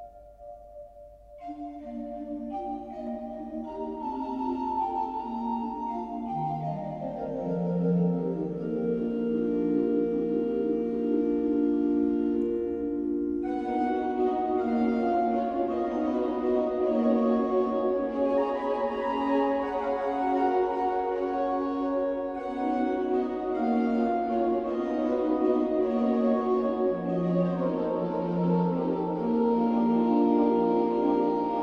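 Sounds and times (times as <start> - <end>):
cuckoo calling: 0.0 - 31.6
organ: 1.5 - 31.6.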